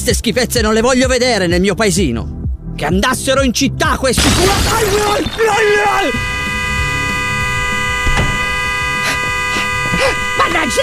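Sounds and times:
speech: 0:00.0 - 0:06.3, 0:10.0 - 0:10.8
car horn honking: 0:04.2 - 0:10.8.

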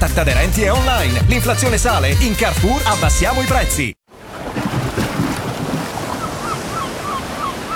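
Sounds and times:
speech: 0:00.2 - 0:04.0
ocean waves: 0:04.1 - 0:07.7.

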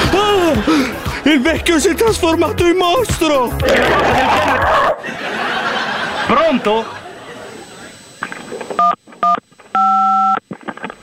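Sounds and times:
laughter: 0:00.0 - 0:02.4, 0:03.5 - 0:08.0
speech: 0:00.6 - 0:05.3, 0:06.3 - 0:07.0
telephone keypad dialing tones: 0:08.8 - 0:10.4.

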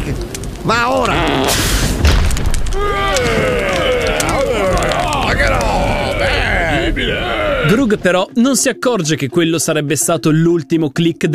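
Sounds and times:
lightning strike thunderclap: 0:00.0 - 0:08.2
speech: 0:00.1 - 0:01.9, 0:06.9 - 0:11.3.

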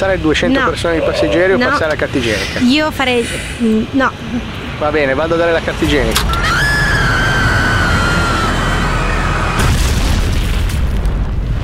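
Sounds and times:
speech: 0:00.0 - 0:06.4
plane crashing: 0:06.3 - 0:11.6.

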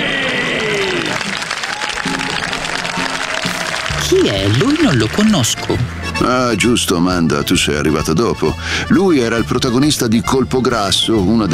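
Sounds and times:
crowd applause: 0:00.0 - 0:06.2
speech: 0:04.1 - 0:11.5.

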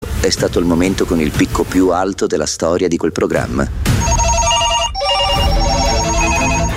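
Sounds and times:
speech: 0:00.2 - 0:03.9
telephones ringing: 0:04.0 - 0:06.7.

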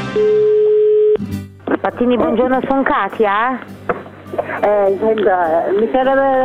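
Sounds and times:
phone line tone on an outgoing call: 0:00.1 - 0:01.2
speech: 0:01.9 - 0:03.8, 0:04.4 - 0:06.4.

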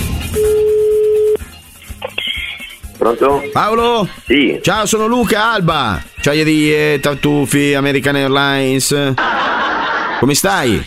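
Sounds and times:
telephone line tone while placing a call: 0:00.4 - 0:01.4
speech: 0:03.1 - 0:09.6, 0:10.2 - 0:10.8
laughter: 0:09.2 - 0:10.8.

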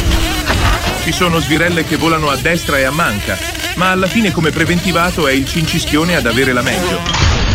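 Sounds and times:
scooter engine sputtering: 0:00.0 - 0:07.2
speech: 0:01.1 - 0:07.4.

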